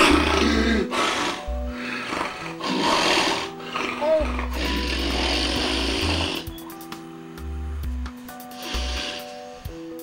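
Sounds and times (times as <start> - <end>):
man snoring while asleep: 0.0 - 6.6, 8.5 - 9.8.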